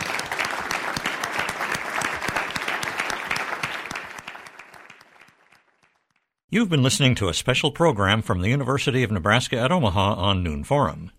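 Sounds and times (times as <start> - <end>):
audience applause: 0.0 - 6.2
speech: 6.5 - 11.1.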